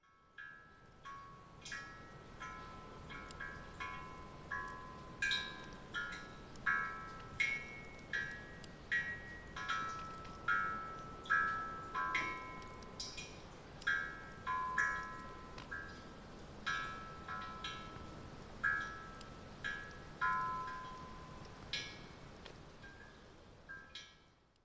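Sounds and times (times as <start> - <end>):
suikinkutsu water drip chime: 0.0 - 24.5.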